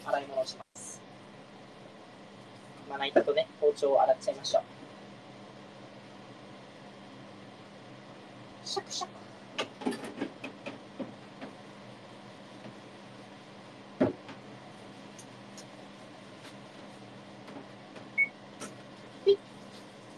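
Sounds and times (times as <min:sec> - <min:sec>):
kitchen exhaust fan running: 0:00.0 - 0:20.1
speech: 0:00.2 - 0:00.7, 0:02.9 - 0:04.8, 0:08.7 - 0:09.1.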